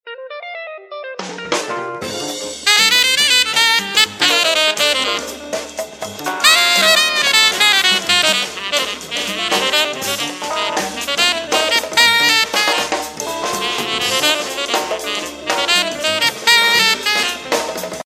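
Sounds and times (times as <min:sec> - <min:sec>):
jazz bar ambience: 0:00.1 - 0:18.0.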